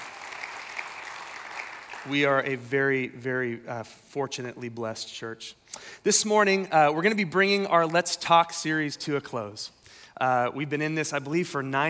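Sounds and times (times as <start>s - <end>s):
audience clapping: 0.0s - 2.6s
speech: 2.0s - 11.8s.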